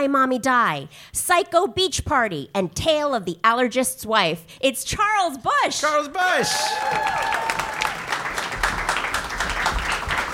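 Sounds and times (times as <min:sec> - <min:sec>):
speech: 0:00.0 - 0:07.4
mild audience applause: 0:06.4 - 0:10.3.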